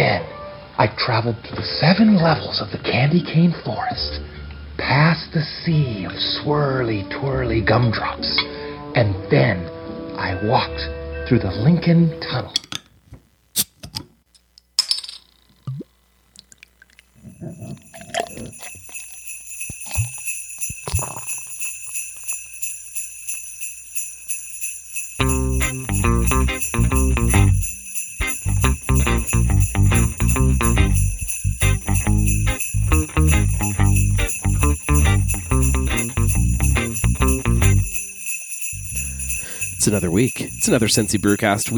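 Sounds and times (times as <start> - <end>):
speech: 0.0 - 12.7, 39.9 - 41.7
jingling bells: 17.3 - 41.7
loud rhythmic beat with deep bass: 25.2 - 38.0.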